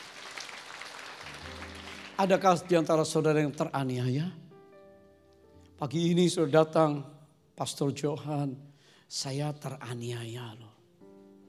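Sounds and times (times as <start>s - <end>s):
audience clapping hands: 0.0s - 3.2s
speech: 2.2s - 4.4s, 5.8s - 10.8s.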